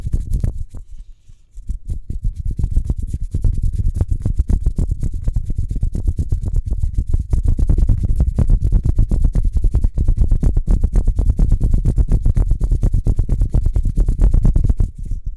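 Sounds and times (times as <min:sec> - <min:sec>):
fast hands rubbing together: 0:00.0 - 0:15.2.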